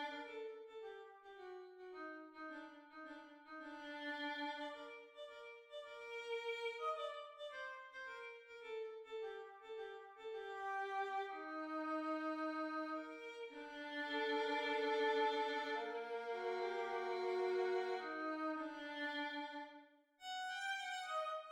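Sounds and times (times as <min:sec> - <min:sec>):
violin solo: 0:00.0 - 0:21.5.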